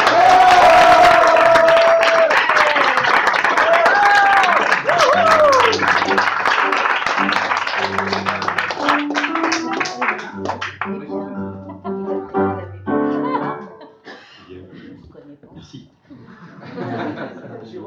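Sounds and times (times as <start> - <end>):
scattered cheers and whoops: 0.0 - 5.9
crowd clapping warmly: 0.0 - 11.2
laughter: 4.4 - 17.8.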